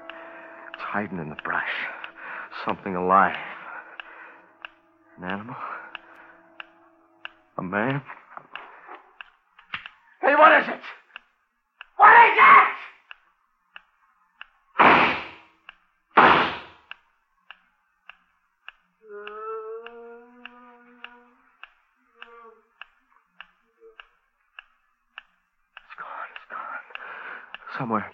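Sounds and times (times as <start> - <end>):
speech: 0.9 - 2.0, 2.6 - 3.6, 5.2 - 5.7, 7.6 - 8.2, 10.3 - 11.0
gunshots: 14.8 - 15.4, 16.2 - 16.8.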